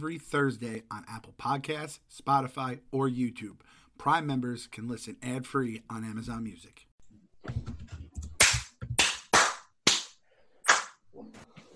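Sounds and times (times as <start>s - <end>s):
speech: 0.0s - 7.7s
loud sharp hand claps: 8.4s - 11.0s.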